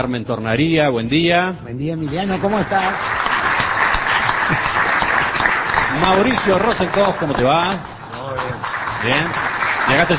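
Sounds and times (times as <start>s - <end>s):
speech: 0.0s - 3.3s, 4.5s - 4.8s, 5.9s - 7.9s, 9.0s - 10.1s
audience applause welcoming panel members: 2.2s - 10.1s.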